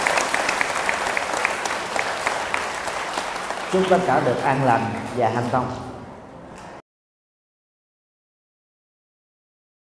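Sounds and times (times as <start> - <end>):
audience applause: 0.0 - 5.2
speech: 3.7 - 5.9.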